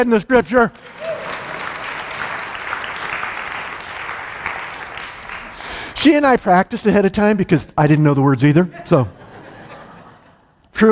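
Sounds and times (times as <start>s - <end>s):
speech: 0.0s - 1.1s, 6.0s - 9.2s
audience applause: 0.7s - 6.0s
laughter: 8.7s - 10.5s.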